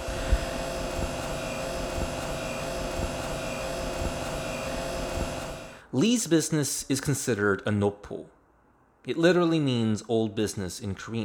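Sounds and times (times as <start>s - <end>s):
industrial refrigerators humming: 0.0s - 5.9s
speech: 5.9s - 8.4s, 9.0s - 11.2s.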